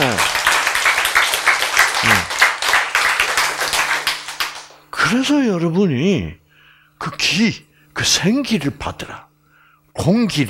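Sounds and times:
audience applause: 0.0s - 4.8s
speech: 5.1s - 6.4s, 7.0s - 9.3s, 10.0s - 10.4s.

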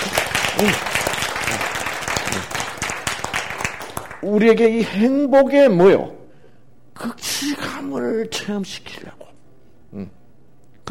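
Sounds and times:
audience applause: 0.0s - 4.2s
speech: 0.6s - 0.9s, 4.2s - 6.2s, 7.0s - 9.2s, 9.9s - 10.2s.

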